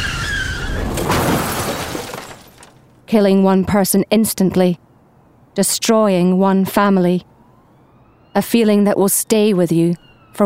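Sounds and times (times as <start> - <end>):
car tyres squealing in a skid: 0.0 - 1.2
car crashing into a motorcycle: 0.0 - 3.0
glass shattering: 0.1 - 2.9
speech: 3.1 - 4.9, 5.6 - 7.3, 8.4 - 10.4.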